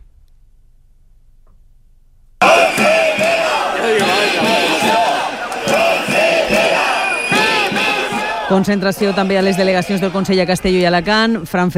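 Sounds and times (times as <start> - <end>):
protesting teachers crowd chanting at rally: 2.4 - 11.2
speech: 8.5 - 11.7.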